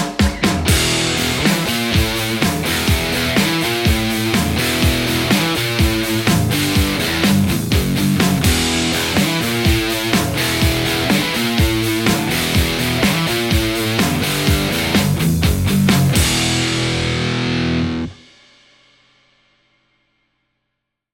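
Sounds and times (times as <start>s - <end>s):
Stratocaster electric guitar: 0.2s - 18.2s.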